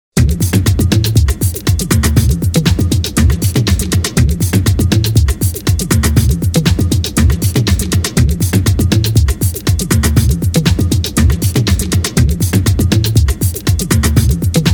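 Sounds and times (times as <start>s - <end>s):
movie music loop: 0.2s - 14.7s.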